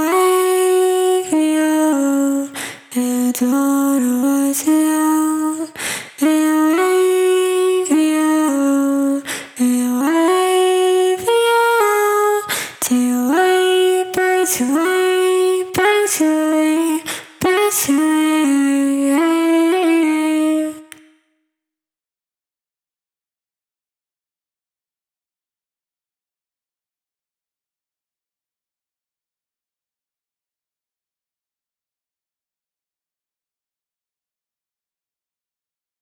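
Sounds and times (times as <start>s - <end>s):
vocals: 0.0s - 21.2s.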